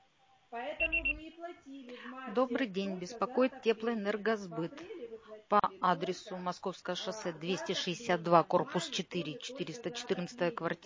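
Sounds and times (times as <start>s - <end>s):
speech: 0.5s - 10.8s
low buzzing hum: 0.7s - 1.3s
voicemail beep tone: 0.8s - 1.2s.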